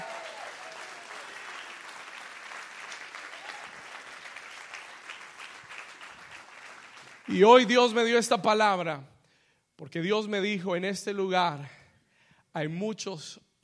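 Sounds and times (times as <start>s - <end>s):
loud applause from audience: 0.0s - 7.5s
speech: 7.3s - 9.1s, 9.8s - 11.8s, 12.5s - 13.6s.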